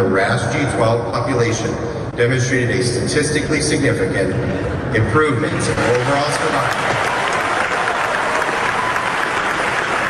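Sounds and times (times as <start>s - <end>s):
speech: 0.0s - 7.1s
audience applause at an oncology conference: 5.5s - 10.0s.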